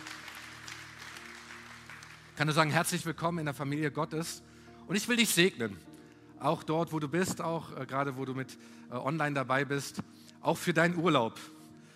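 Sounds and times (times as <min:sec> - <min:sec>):
audience applause: 0:00.0 - 0:02.7
speech: 0:02.4 - 0:11.6.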